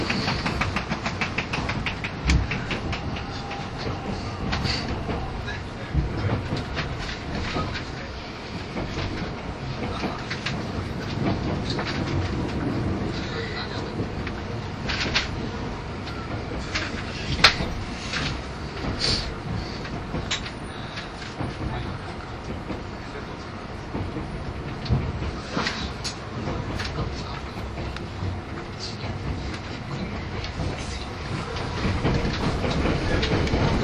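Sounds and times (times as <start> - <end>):
683 series express train running on rails: 0.0 - 33.8.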